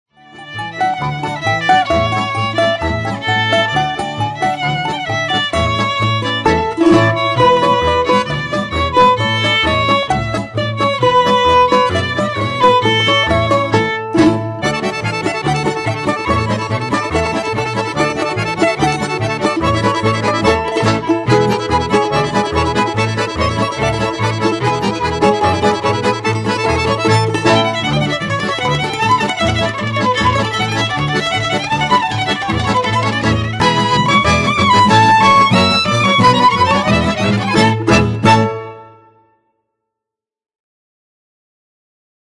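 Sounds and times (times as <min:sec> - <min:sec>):
trio playing czardas: 0:00.6 - 0:38.8.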